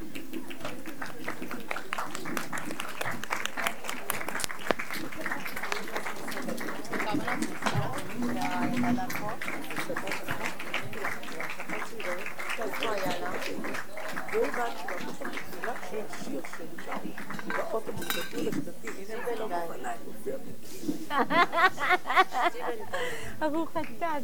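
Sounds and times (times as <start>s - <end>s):
laughter: 0.0s - 19.0s, 20.5s - 24.2s
applause: 0.0s - 19.6s, 23.6s - 24.0s.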